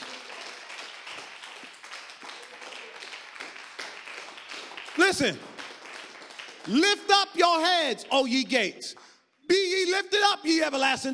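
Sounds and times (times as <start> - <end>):
crowd applause in praise: 0.0 - 7.2
speech: 5.0 - 5.5, 6.6 - 11.1.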